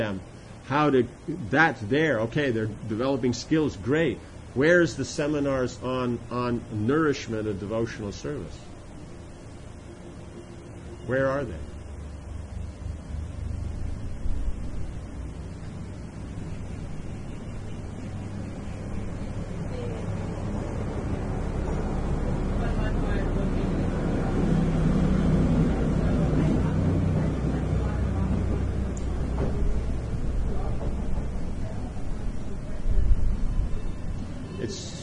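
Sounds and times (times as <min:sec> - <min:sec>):
speech: 0:00.0 - 0:08.7, 0:11.1 - 0:11.7
truck driving past: 0:08.9 - 0:35.0.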